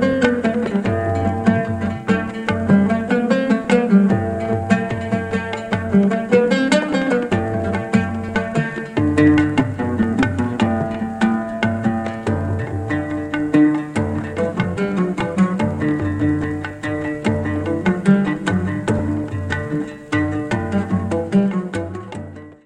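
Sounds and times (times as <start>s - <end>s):
kanun in Sufi music: 0.0s - 22.6s
lute in Sufi music: 0.0s - 22.6s
tabla in Sufi music: 0.0s - 22.6s.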